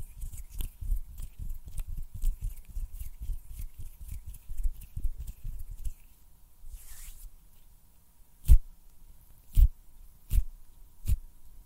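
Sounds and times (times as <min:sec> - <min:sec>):
hand tapping and brushing: 0:00.0 - 0:07.7.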